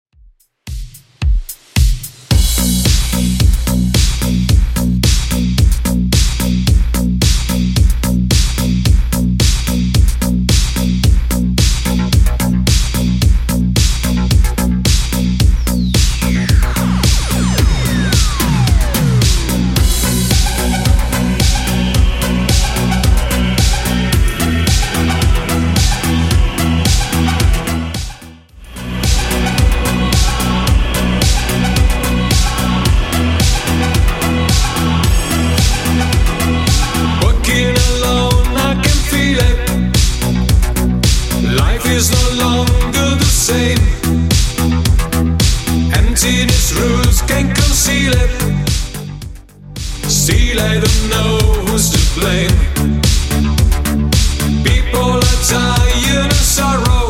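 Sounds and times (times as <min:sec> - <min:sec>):
clean 80s drum machine beat: 0:00.1 - 0:57.0.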